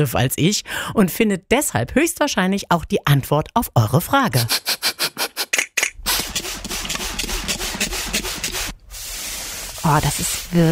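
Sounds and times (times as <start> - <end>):
speech: 0.0 - 4.8, 9.8 - 10.7
steam iron hissing on a blouse: 6.1 - 10.7.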